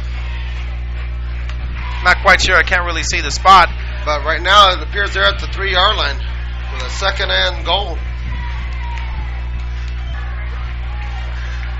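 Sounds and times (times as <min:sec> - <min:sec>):
low hum: 0:00.0 - 0:11.7
stadium crowd cheering: 0:00.0 - 0:11.7
speech: 0:02.0 - 0:08.1.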